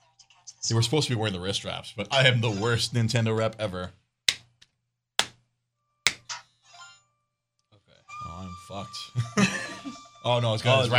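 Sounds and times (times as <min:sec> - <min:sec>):
speech: 0:00.6 - 0:04.0, 0:08.7 - 0:09.5, 0:10.2 - 0:10.9
hands clapping: 0:04.3 - 0:04.6, 0:06.1 - 0:06.4
laughter: 0:09.2 - 0:10.0.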